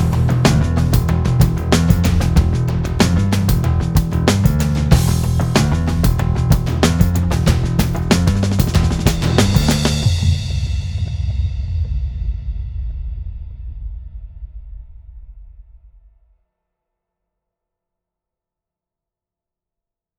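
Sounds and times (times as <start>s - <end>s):
drone: 0.0s - 10.4s
drums: 0.0s - 15.9s
bass: 0.0s - 16.0s.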